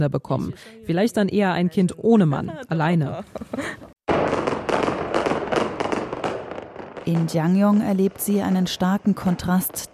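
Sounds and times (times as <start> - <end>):
speech: 0.0 - 3.9, 7.1 - 9.9
fireworks heralding a wedding: 4.1 - 9.9.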